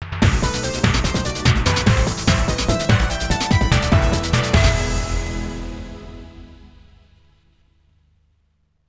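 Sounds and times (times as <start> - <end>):
fanfare: 0.2 - 7.2.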